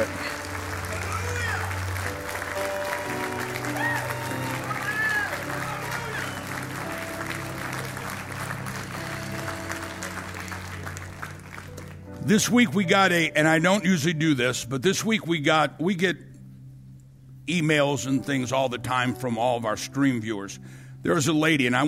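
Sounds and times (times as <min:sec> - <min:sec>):
audience clapping and applauding: 0:00.0 - 0:12.6
low musical drone: 0:00.0 - 0:20.7
speech: 0:12.3 - 0:16.3, 0:17.5 - 0:21.8.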